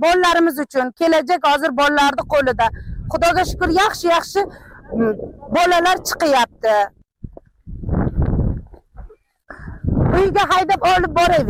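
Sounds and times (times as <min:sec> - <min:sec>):
speech: 0:00.0 - 0:07.0, 0:10.1 - 0:11.4
donkey hooves clip-clopping carrying children to school: 0:07.3 - 0:09.4.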